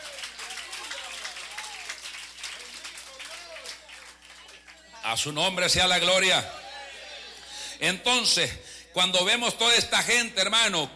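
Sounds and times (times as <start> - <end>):
church audience clapping: 0.0 - 5.0
speech: 5.0 - 6.6, 7.8 - 10.9.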